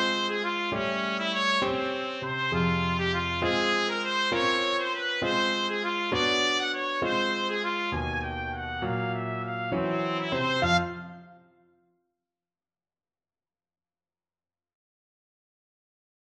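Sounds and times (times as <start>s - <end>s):
trumpet playing: 0.0s - 11.6s.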